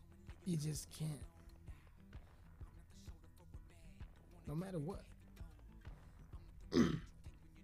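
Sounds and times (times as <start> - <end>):
speech: 0.5 - 1.3, 4.5 - 5.1
man clearing throat: 6.7 - 7.1.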